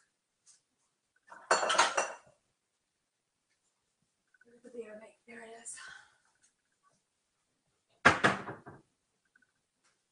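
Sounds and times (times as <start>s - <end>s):
glass bowl clinking against dishes: 1.3s - 2.3s.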